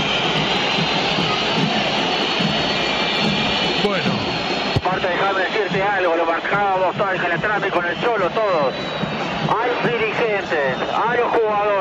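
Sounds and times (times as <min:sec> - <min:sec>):
stadium crowd whistling in disapproval: 0:00.0 - 0:11.7
speech: 0:06.0 - 0:11.7.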